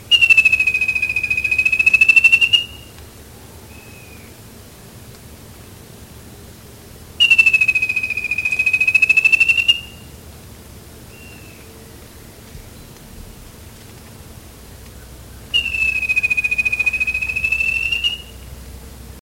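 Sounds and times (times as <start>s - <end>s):
bird trill: 0.0s - 2.9s, 3.7s - 4.4s, 7.2s - 10.1s, 11.1s - 11.8s, 15.4s - 18.5s.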